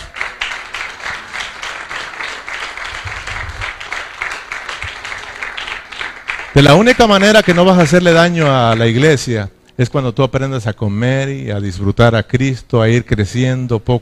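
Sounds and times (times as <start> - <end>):
audience applause: 0.0 - 9.3
speech: 6.6 - 14.0.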